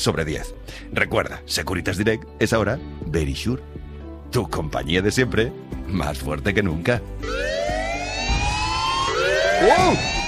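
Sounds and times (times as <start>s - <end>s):
speech: 0.0s - 7.7s, 9.6s - 10.1s
alarm siren: 7.2s - 10.2s.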